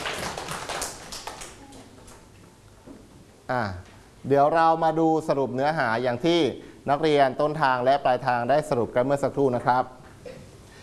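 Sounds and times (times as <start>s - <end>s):
students clapping hands: 0.0s - 2.2s
speech: 3.5s - 10.0s.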